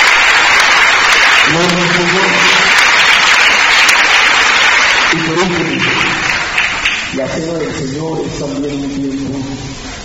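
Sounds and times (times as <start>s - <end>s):
audience applauding: 0.0s - 7.8s
speech: 1.6s - 2.4s, 7.2s - 9.9s.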